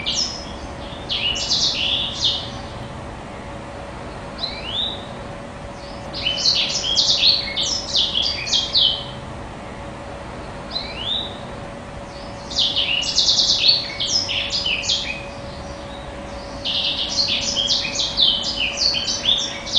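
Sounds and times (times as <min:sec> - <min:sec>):
blackthroat bird singing vigorously: 0:00.0 - 0:02.9, 0:04.1 - 0:09.2, 0:10.4 - 0:19.7.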